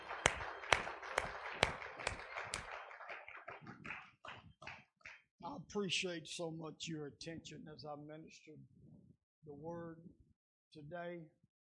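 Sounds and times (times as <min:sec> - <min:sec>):
crowd clapping hands in praise: 0:00.0 - 0:05.3
speech: 0:05.7 - 0:08.8, 0:09.5 - 0:11.4.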